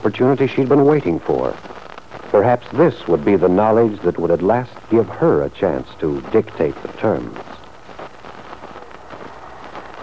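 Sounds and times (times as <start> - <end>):
gentle steady rainfall: 0.0 - 10.0
speech: 0.1 - 1.7, 2.3 - 7.5.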